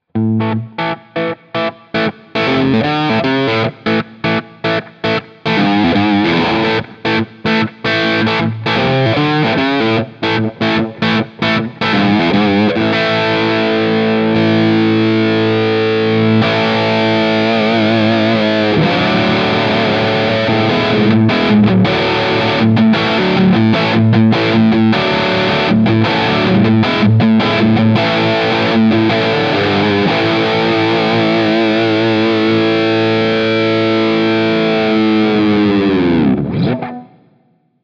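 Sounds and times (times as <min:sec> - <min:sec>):
driven guitar amp through a vintage basketweave 4x12 cabinet: 0:00.0 - 0:37.8.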